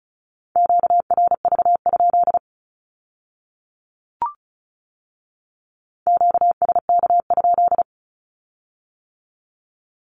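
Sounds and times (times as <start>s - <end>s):
Morse code beeps sending a Q-code: 0.6s - 2.4s, 6.1s - 7.8s.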